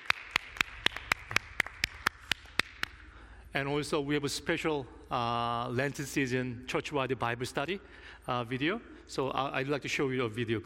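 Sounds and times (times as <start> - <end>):
audience applause: 0.0 - 2.6
speech: 3.6 - 10.6.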